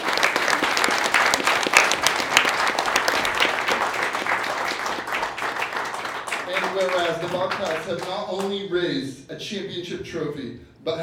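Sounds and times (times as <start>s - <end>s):
audience applause: 0.0s - 8.5s
speech: 7.4s - 11.0s.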